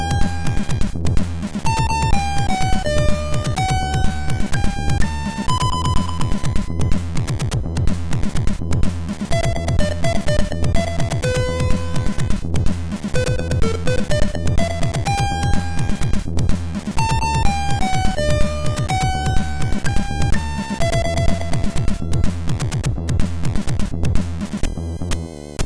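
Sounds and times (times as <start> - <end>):
MOS6581 SID chiptune loop: 0.0 - 25.6.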